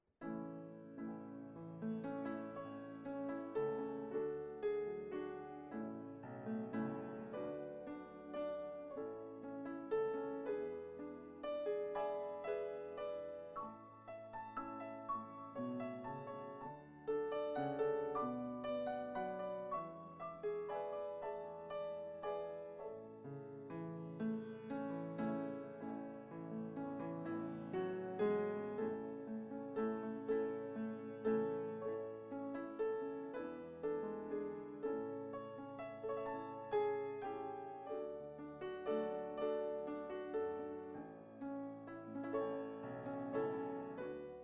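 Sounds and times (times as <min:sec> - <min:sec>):
prelude music: 0:00.2 - 0:44.4.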